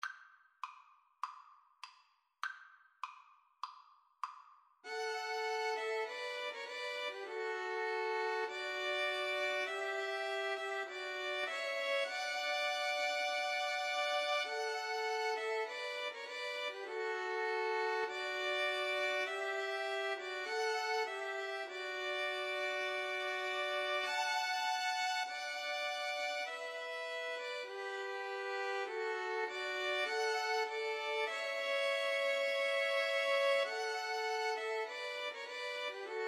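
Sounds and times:
two violins: 0:04.8 - 0:36.2
cello: 0:04.9 - 0:36.2.

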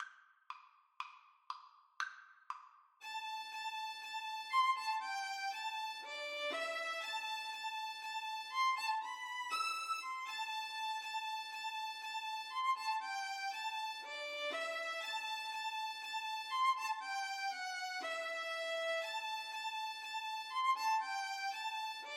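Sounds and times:
violin duet: 0:03.0 - 0:22.1.

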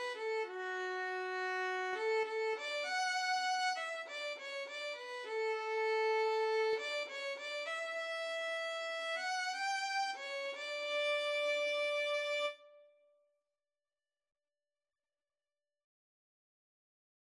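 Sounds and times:
cello: 0:00.0 - 0:12.7.

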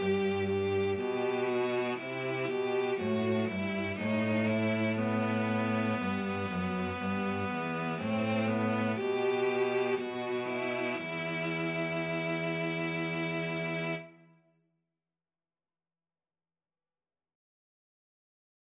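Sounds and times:
cello trio: 0:00.0 - 0:14.1.

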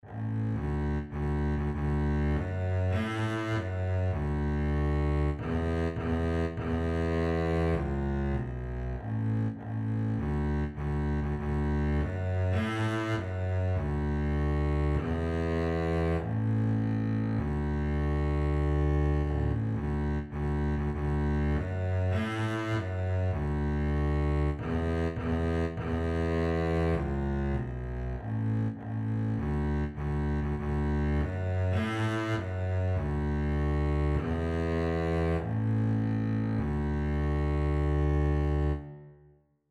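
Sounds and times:
double bass melody: 0:00.0 - 0:39.2.

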